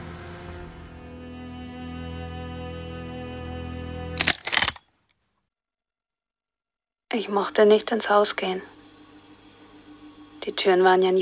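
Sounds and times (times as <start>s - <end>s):
car engine humming as the car slowly pulls away without lights: 0.0s - 1.5s
speech: 7.1s - 8.8s, 10.4s - 11.2s.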